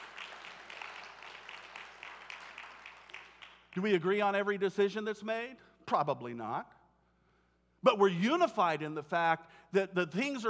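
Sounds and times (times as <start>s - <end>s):
audience applause: 0.0s - 3.6s
speech: 3.8s - 6.8s, 7.8s - 10.4s.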